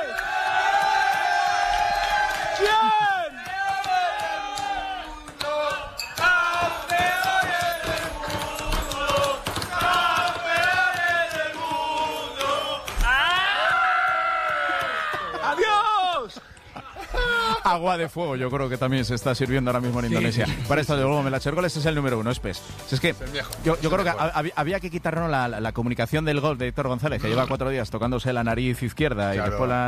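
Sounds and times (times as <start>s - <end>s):
team party crowd cheering and shouting: 0.0s - 17.7s
laughter: 14.9s - 18.3s, 20.1s - 21.0s
speech: 17.8s - 29.8s.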